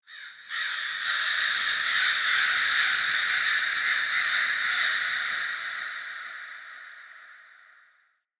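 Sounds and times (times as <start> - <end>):
daytime bird of prey ambience: 0.0 - 8.0.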